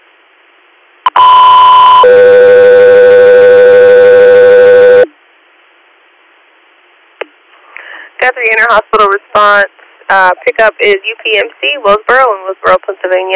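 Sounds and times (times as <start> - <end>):
dispatch alert tones: 1.1 - 5.1
speech: 8.3 - 13.3.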